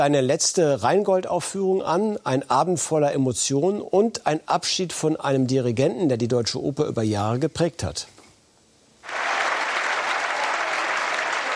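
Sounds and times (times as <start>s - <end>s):
speech: 0.0s - 8.2s
audience applause after opera: 9.0s - 11.5s.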